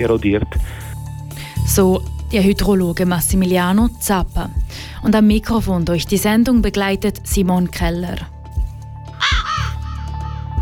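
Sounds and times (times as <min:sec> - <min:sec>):
speech: 0:00.0 - 0:00.8, 0:01.7 - 0:08.3
raven cawing: 0:09.1 - 0:10.6.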